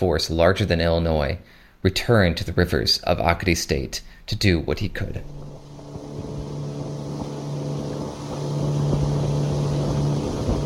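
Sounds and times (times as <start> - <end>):
speech: 0.0 - 5.6
motorboat engine on a river: 5.2 - 10.6.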